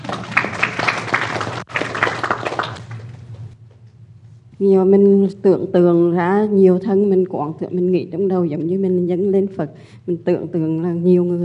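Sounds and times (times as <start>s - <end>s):
audience clapping hands during a Buddhist teaching session: 0.0s - 3.6s
speech: 4.6s - 11.4s.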